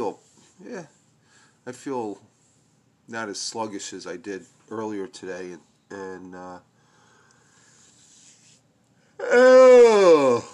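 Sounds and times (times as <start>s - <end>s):
speech: 0.0s - 1.0s, 1.6s - 2.3s, 3.1s - 6.7s, 9.2s - 10.5s
big drawn-out yawn: 9.2s - 10.5s.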